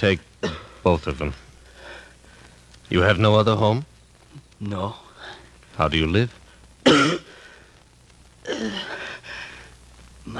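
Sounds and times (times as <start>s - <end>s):
speech: 0.0s - 1.4s, 2.9s - 3.9s, 4.6s - 5.0s, 5.8s - 7.2s, 8.6s - 9.0s
coughing and throat clearing: 0.4s - 0.8s, 6.8s - 7.4s.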